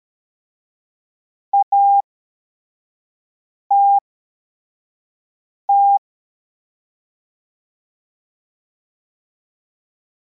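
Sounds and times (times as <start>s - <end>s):
CW morse code beeps: 1.5s - 2.0s, 3.7s - 4.0s, 5.7s - 6.0s.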